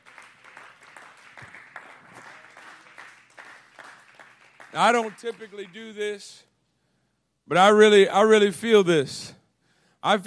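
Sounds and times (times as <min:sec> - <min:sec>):
audience clapping hands: 0:00.0 - 0:06.3
speech: 0:04.7 - 0:06.5, 0:07.5 - 0:09.4, 0:10.0 - 0:10.2.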